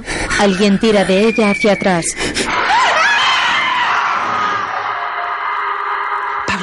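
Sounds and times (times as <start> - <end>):
terrified screams in a building: 0.3 - 6.5
speech: 0.4 - 2.5.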